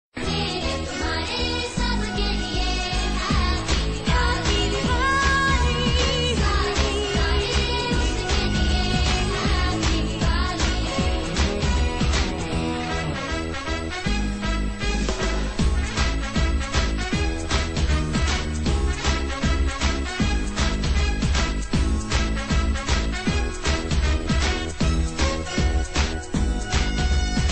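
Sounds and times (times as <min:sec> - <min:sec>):
Diwali song: 0:00.2 - 0:27.5.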